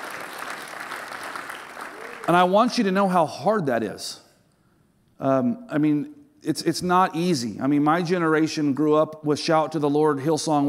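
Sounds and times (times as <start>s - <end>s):
audience applause: 0.0s - 2.6s
speech: 2.3s - 4.2s, 5.2s - 10.6s.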